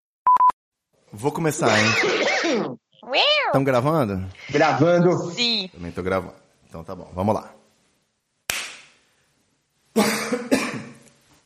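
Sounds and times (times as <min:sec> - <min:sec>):
speech: 0:01.1 - 0:07.6
sharp snap: 0:08.5 - 0:09.0
person coughing harshly: 0:10.0 - 0:11.0.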